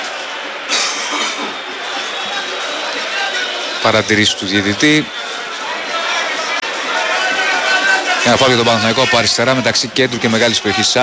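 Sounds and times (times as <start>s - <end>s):
stadium crowd roaring and shouting for a card: 0.0s - 11.0s
speech: 3.8s - 5.2s, 8.3s - 11.0s.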